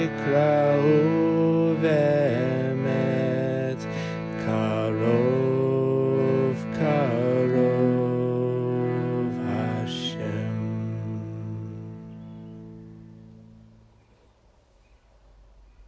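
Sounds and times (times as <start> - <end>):
chanting: 0.0 - 12.6.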